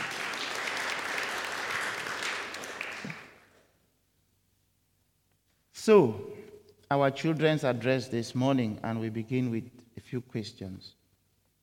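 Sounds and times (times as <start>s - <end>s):
audience clapping: 0.0s - 3.7s
speech: 5.8s - 6.3s, 6.9s - 11.0s.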